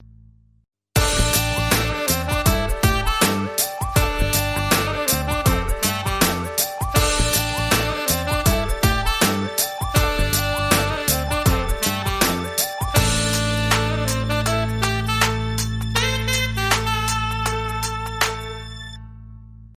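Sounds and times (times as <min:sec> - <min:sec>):
hip-hop soul saxophone: 0:01.0 - 0:19.0.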